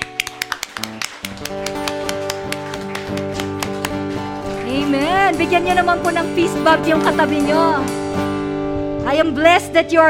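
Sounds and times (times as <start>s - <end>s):
audience clapping hands in praise: 0.0s - 4.8s
speech: 5.3s - 8.0s, 9.1s - 10.0s.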